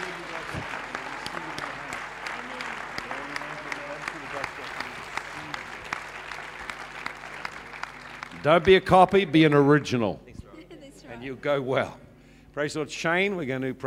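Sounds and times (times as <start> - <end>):
audience clapping: 0.0 - 9.6
speech: 8.4 - 10.2, 11.2 - 12.0, 12.6 - 13.8.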